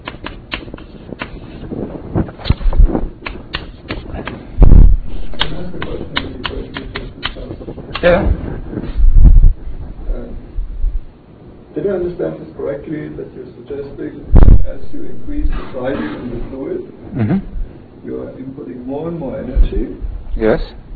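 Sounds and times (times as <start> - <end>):
taps and scrapes of an equation being written on a board: 0.0 - 1.6, 2.4 - 4.4, 5.4 - 8.0
louder low thumps: 1.1 - 3.5, 4.1 - 11.2, 14.3 - 18.0
speech: 8.0 - 8.4, 12.2 - 17.5, 18.9 - 20.8.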